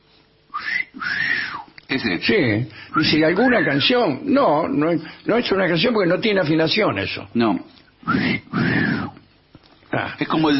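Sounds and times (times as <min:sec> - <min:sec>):
person whistling a wolf whistle: 0:00.5 - 0:01.7, 0:08.0 - 0:09.2
speech: 0:02.0 - 0:09.1, 0:10.0 - 0:10.5.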